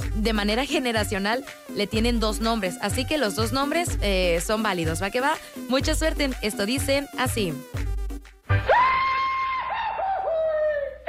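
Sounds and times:
speech: 0.2 - 7.9
Goofy cartoon dog's famous yell: 9.1 - 11.0.

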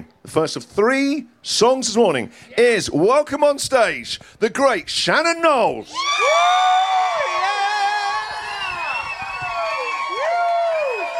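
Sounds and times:
speech: 0.3 - 6.8
audience applause: 6.3 - 11.1.

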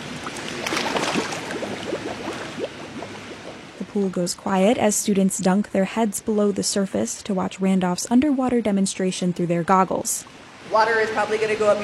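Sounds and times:
bubbles blown out underwater in pool: 0.0 - 4.1
speech: 4.0 - 11.8.

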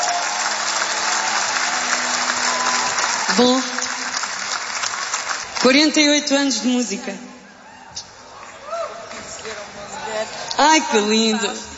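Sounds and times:
audience applauding dancers: 0.0 - 6.0, 8.2 - 10.4
speech: 3.3 - 3.8, 5.6 - 7.3, 10.6 - 11.7.

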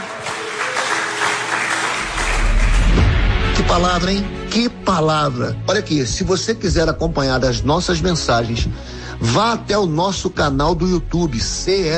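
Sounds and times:
audience applauding: 0.0 - 3.2
speech: 3.7 - 11.9.

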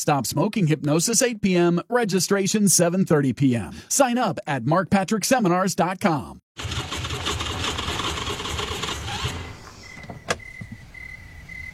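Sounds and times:
speech: 0.0 - 6.9
car engine out of gas cranking and failing to start among cornfields: 6.6 - 10.8.

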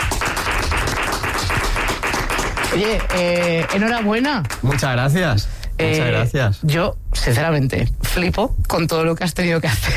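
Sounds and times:
audience applause: 0.0 - 4.9
speech: 2.7 - 9.9.

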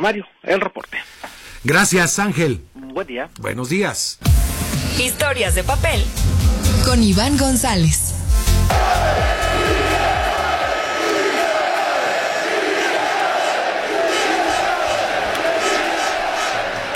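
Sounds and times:
speech: 0.0 - 8.1
stadium crowd chanting: 8.7 - 16.9.

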